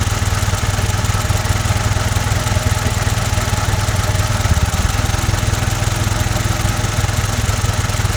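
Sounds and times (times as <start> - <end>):
asteroid winch engine running: 0.0 - 8.1.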